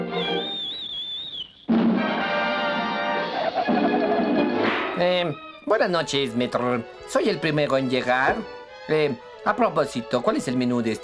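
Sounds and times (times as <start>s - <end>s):
person whistling: 0.1s - 1.7s
laughter: 2.6s - 5.0s
speech: 5.0s - 11.0s.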